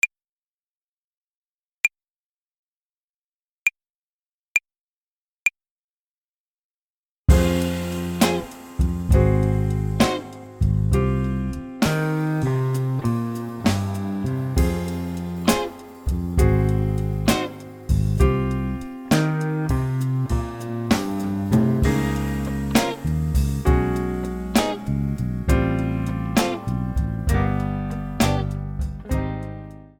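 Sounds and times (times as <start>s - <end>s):
jazz club trombone play-along: 7.3s - 29.3s.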